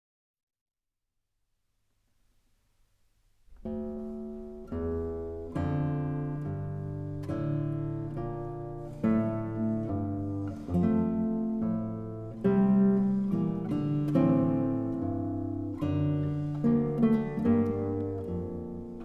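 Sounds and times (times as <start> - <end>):
guitar playing chorales: 3.6 - 19.0.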